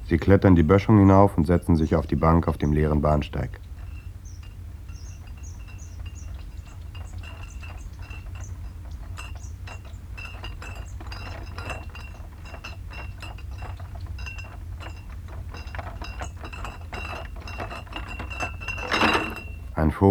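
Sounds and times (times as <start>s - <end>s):
glass beer bottles clinking and rattling in a carried beer crate: 0.0s - 20.0s
speech: 0.1s - 3.7s.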